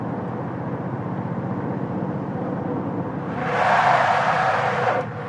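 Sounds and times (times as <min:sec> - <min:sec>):
small compact car accelerating: 0:00.2 - 0:05.2
small compact car tyres skidding: 0:02.9 - 0:05.2.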